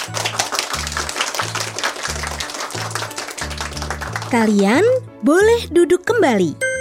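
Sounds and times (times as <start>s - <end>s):
children in a class clapping: 0.0s - 4.8s
speech: 4.3s - 6.6s.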